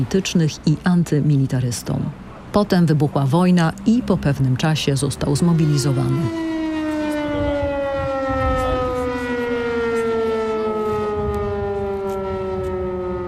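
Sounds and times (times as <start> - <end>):
speech: 0.0 - 6.6
air raid siren: 4.9 - 13.2.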